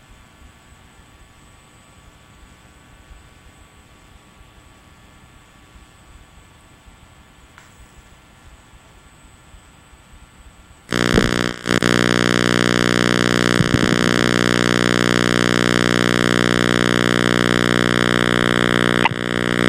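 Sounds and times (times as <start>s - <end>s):
loud harsh buzzer: 10.9s - 19.6s.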